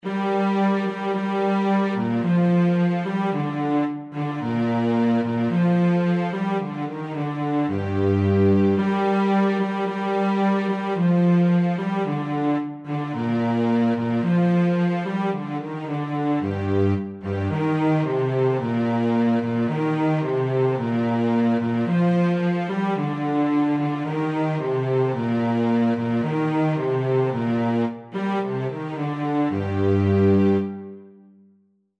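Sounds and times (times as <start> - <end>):
cello playing: 0.0 - 31.2.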